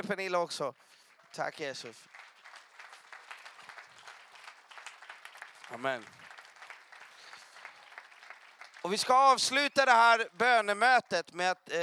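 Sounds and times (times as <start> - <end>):
speech: 0.1 - 2.2, 5.7 - 6.2, 8.8 - 11.8
audience applause: 0.8 - 10.0.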